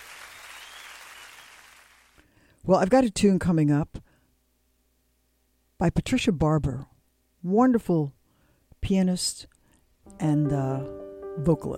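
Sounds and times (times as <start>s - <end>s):
audience applause: 0.0s - 2.2s
speech: 2.6s - 4.0s, 5.8s - 8.2s, 8.8s - 9.5s, 10.1s - 11.7s.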